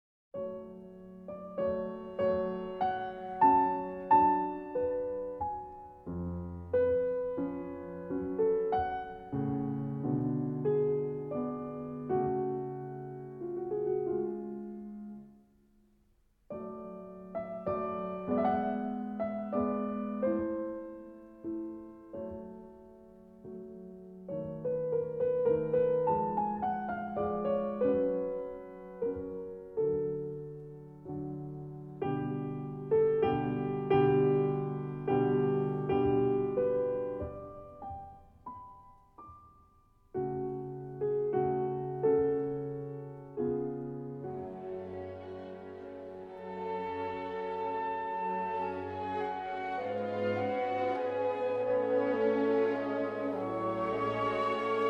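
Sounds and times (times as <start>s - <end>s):
piano concerto andante: 0.4s - 54.8s.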